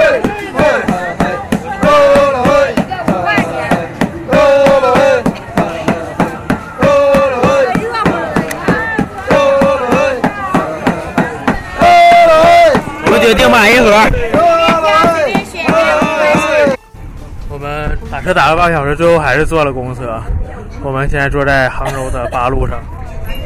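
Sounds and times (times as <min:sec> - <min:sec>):
men chanting a call-and-response work cry: 0:00.0 - 0:16.8
men pounding peanut candy: 0:00.0 - 0:16.8
speech: 0:18.3 - 0:23.0.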